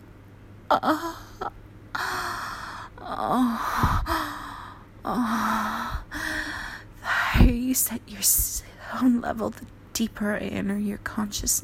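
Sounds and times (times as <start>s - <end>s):
faint steady hum: 0.0s - 11.6s
speech: 0.7s - 2.1s, 3.1s - 4.0s, 5.0s - 5.8s, 7.7s - 11.6s
breathy low-pitched moans with gasps and sighs: 0.7s - 6.9s.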